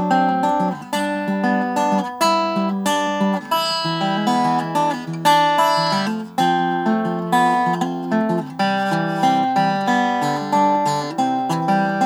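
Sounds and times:
1938 Regal dobro model 27: 0.0s - 12.0s.

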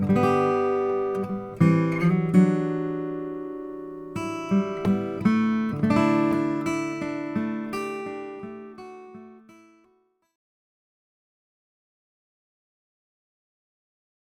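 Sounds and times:
Huss and Dalton 00 acoustic guitar with Indian rosewood: 0.0s - 9.9s.

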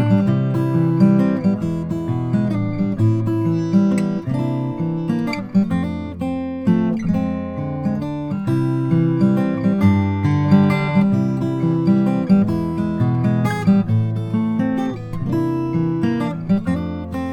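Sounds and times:
Froggy Bottom M Deluxe Guatemalan rosewood guitar: 0.0s - 17.3s.

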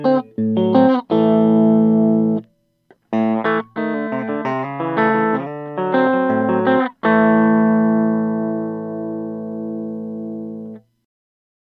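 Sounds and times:
electric guitar with flame redwood top: 0.0s - 10.9s.

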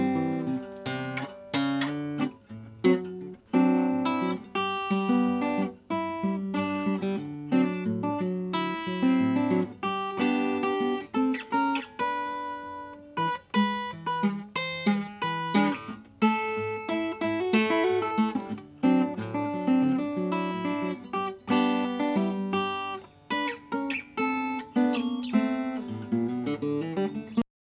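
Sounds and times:
1967 Harmony H165 mahogany acoustic guitar playing vintage blues: 0.0s - 27.4s.

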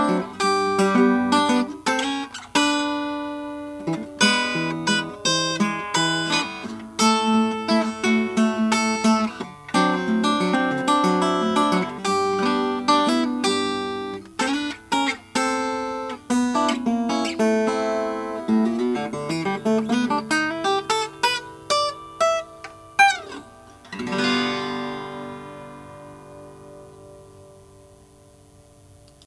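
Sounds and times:
Gibson L-1 Cremona sunburst guitar: 0.0s - 29.2s.

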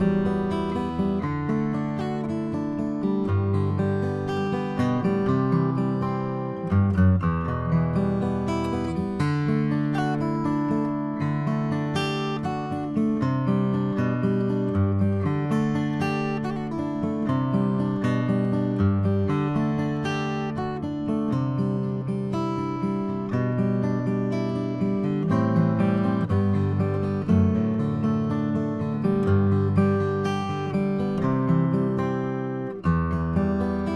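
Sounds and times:
Brazilian rosewood acoustic guitar: 0.0s - 33.9s.

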